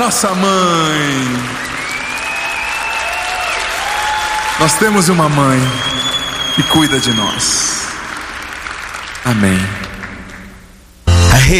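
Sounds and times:
speech: 0.0 - 1.6, 4.6 - 7.8, 9.2 - 9.9
crowd clapping for Our Lady in a Catholic setting: 0.0 - 10.9.

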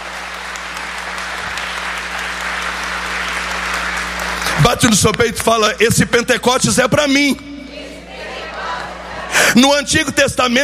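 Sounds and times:
audience applauding: 0.0 - 5.6
speech: 4.6 - 7.5, 9.6 - 10.6.

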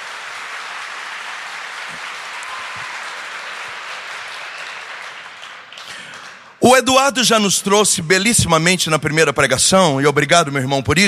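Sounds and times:
audience applause: 0.0 - 6.6
speech: 1.9 - 2.2, 6.6 - 11.0.

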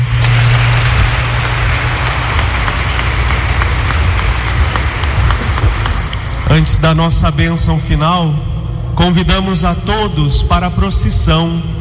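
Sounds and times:
audience applause: 0.0 - 6.9
low hum: 0.0 - 11.8
speech: 6.6 - 11.8.

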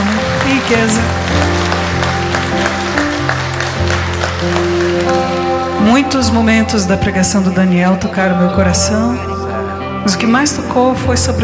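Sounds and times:
audience applauding: 0.0 - 5.9
speech: 0.7 - 1.6, 6.0 - 9.3, 10.0 - 11.4.

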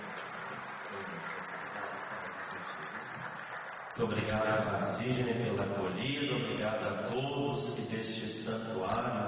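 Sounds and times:
applause: 0.0 - 5.6
speech: 4.0 - 9.2.

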